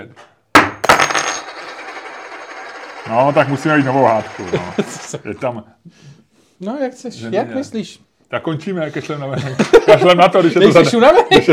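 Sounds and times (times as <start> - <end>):
speech: 0.0 - 0.3, 3.0 - 11.5
coin being tossed and landing: 0.6 - 5.2
laughter: 4.4 - 5.4, 9.0 - 11.5.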